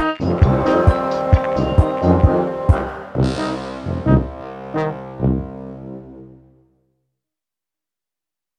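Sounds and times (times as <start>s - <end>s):
low brass banda: 0.0s - 6.7s.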